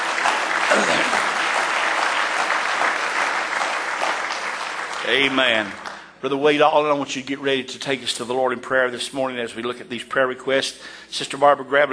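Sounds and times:
audience clapping hands in praise: 0.0s - 6.2s
speech: 0.7s - 1.2s, 5.1s - 11.9s.

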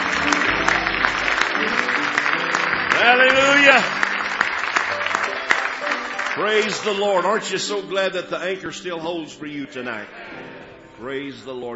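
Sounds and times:
audience clapping hands in praise: 0.0s - 7.6s
speech: 6.4s - 10.4s, 11.0s - 11.7s.

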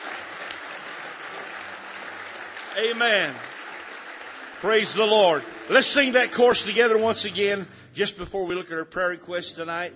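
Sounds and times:
church congregation clapping hands in praise: 0.0s - 7.6s
speech: 2.8s - 3.5s, 4.6s - 9.9s.

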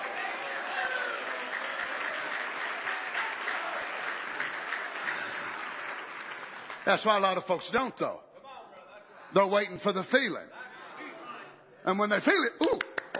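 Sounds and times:
audience clapping hands: 0.0s - 8.0s, 12.5s - 13.1s
speech: 6.9s - 8.3s, 9.3s - 10.6s, 11.8s - 13.1s.

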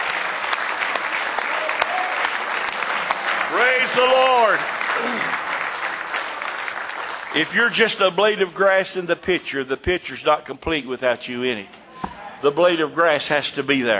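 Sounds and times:
audience applause: 0.0s - 8.4s
speech: 3.6s - 5.4s, 7.4s - 11.8s, 12.4s - 13.9s.

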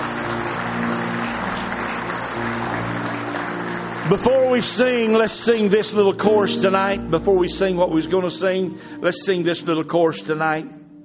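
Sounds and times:
audience clapping: 0.0s - 6.5s
speech: 4.1s - 10.8s.

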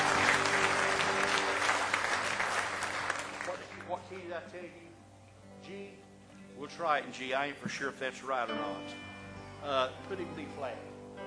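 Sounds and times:
audience clapping hands in praise: 0.0s - 4.3s
speech: 6.6s - 11.2s.

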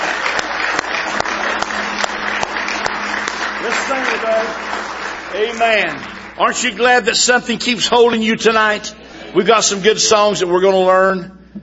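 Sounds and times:
audience clapping hands: 0.0s - 8.8s
speech: 4.2s - 11.4s.

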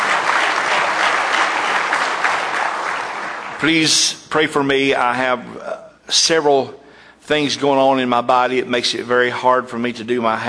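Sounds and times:
audience hand clapping: 0.0s - 3.8s
speech: 3.6s - 10.4s.

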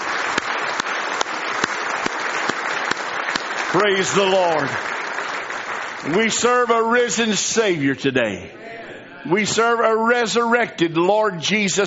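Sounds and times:
audience applauding: 0.0s - 7.4s
speech: 3.8s - 5.0s, 6.0s - 11.8s.

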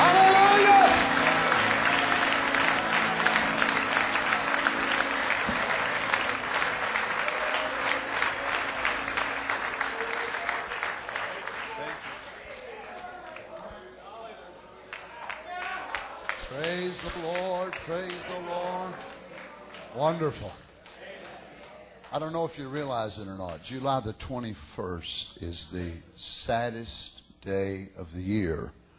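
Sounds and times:
large audience applauding in praise: 0.0s - 13.9s, 14.9s - 22.3s
speech: 20.1s - 20.6s, 22.2s - 28.8s.

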